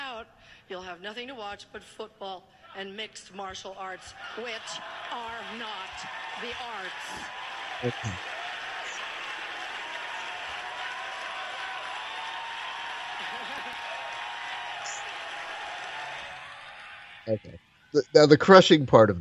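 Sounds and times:
speech: 0.7s - 8.4s, 17.3s - 19.1s
audience applause: 4.2s - 17.4s
laughter: 6.9s - 10.5s, 13.0s - 15.1s.

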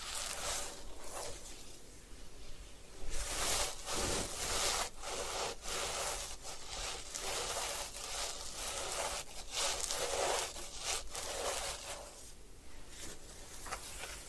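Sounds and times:
hair washing and scalp massage rubbing: 0.0s - 1.8s, 3.1s - 12.3s.

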